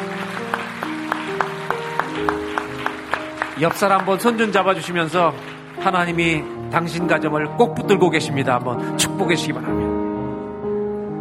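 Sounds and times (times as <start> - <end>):
audience clapping in rhythm: 0.0 - 7.4
sustained keyboard chords: 0.0 - 11.1
speech: 3.6 - 9.8.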